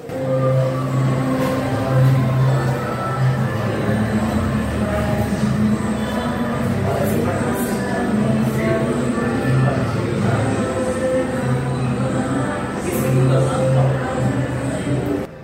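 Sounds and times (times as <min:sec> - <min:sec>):
film soundtrack music heard through cinema wall: 0:00.0 - 0:15.4.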